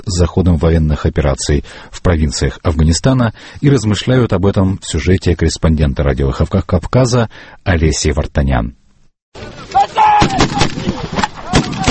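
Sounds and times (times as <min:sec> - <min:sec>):
speech: 0:00.1 - 0:10.0
faint shouted voices: 0:09.4 - 0:11.9
soldiers' gunfire at military training base: 0:10.2 - 0:11.9.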